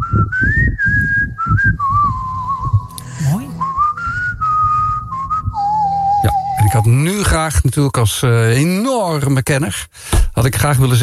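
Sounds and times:
man whistling a song melody: 0.0 - 7.3
speech: 0.1 - 1.0, 6.7 - 11.0
low rumble: 1.1 - 7.0.

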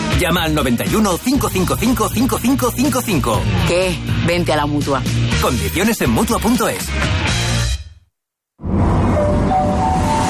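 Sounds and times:
speech: 0.2 - 7.4
metro train arriving at station: 8.8 - 10.2.

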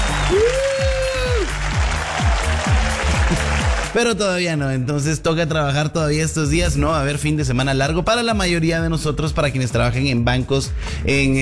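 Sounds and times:
whistle: 0.0 - 1.5
crowd applause: 0.0 - 4.0
low buzzy cheering: 0.0 - 4.0
speech: 0.3 - 0.6, 4.0 - 11.4.

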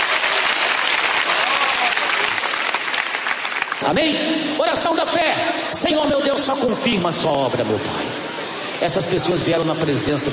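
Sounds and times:
audience clapping hands: 0.0 - 4.2
speech: 3.8 - 10.3.

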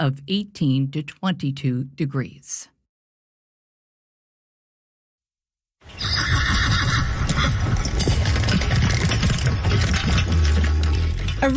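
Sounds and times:
speech: 0.0 - 2.7
horse neighing and whinnying: 5.8 - 9.7
hooves clattering: 5.9 - 11.5
horse tack jingling: 6.0 - 11.5.

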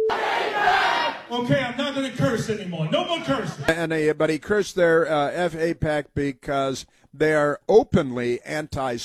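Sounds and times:
rally crowd cheering and shouting: 0.1 - 1.3
speech: 1.3 - 9.0.

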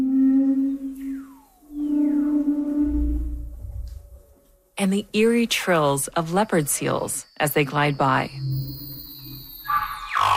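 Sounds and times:
humpback whale calls underwater in Antarctica: 0.0 - 4.1
deep rumble: 2.2 - 4.4
speech: 4.8 - 8.6.

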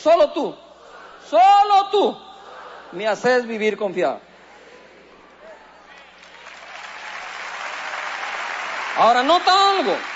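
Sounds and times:
speech: 0.0 - 0.7, 1.3 - 2.3, 2.9 - 4.3, 9.0 - 10.1
audience applauding: 6.0 - 10.1.

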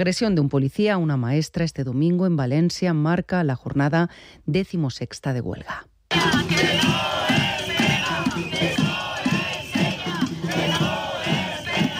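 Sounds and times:
speech: 0.0 - 7.1
large protest crowd chanting a slogan: 6.1 - 11.9.

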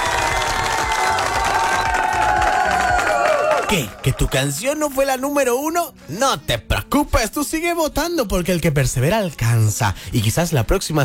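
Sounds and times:
audience applause: 0.0 - 5.1
speech: 3.7 - 11.0.

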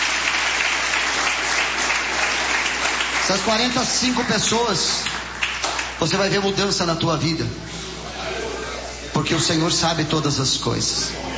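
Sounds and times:
congregation clapping for Jesus during a church service: 0.0 - 6.4
speech: 3.3 - 5.2, 6.0 - 7.8, 9.2 - 11.3.

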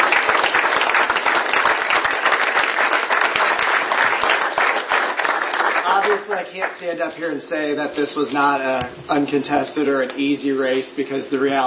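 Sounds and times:
audience applause: 0.0 - 6.8
speech: 6.2 - 11.6.

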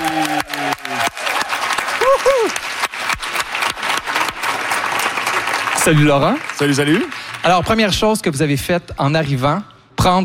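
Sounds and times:
audience applause: 0.0 - 8.0
speech: 5.8 - 10.2.

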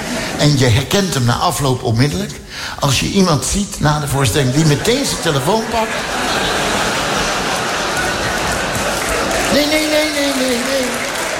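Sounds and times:
laughter: 0.0 - 1.0, 4.3 - 11.3
speech: 0.4 - 6.7, 9.5 - 11.1
audience clapping: 6.1 - 11.3.

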